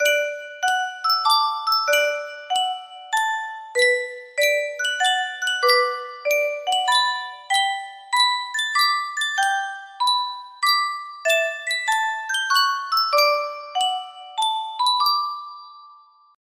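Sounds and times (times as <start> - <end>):
Yunsheng custom tune music box: 0.0 - 16.4.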